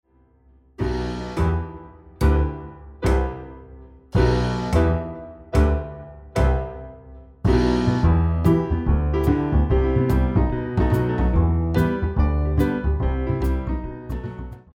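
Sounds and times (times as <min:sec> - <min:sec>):
jazz accompaniment: 0:00.8 - 0:14.7.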